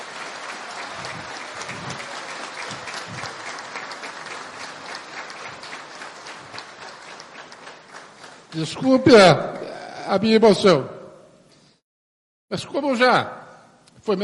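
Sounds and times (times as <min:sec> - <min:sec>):
audience applause: 0:00.0 - 0:08.7
speech: 0:08.6 - 0:11.0, 0:12.5 - 0:13.4, 0:14.0 - 0:14.2.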